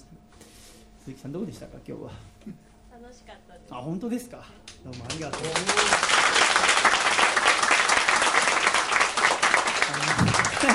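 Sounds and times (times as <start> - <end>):
speech: 1.1 - 6.6
audience applause: 4.9 - 10.7.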